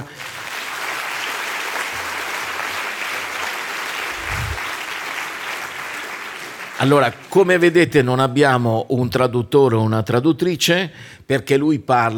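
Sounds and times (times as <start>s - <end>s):
audience applause: 0.0s - 7.4s
speech: 6.8s - 12.1s.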